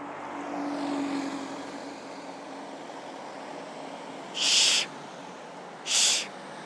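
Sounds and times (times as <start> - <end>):
bus passing: 0.0 - 6.6
street traffic: 0.0 - 6.6
short hissing bursts: 4.4 - 4.9, 5.9 - 6.3.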